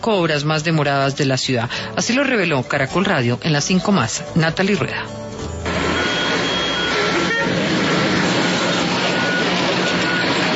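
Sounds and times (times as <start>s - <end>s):
speech: 0.0s - 5.2s
street traffic at Calle 94 and Avenida NQS in Bogotá: 5.6s - 10.5s.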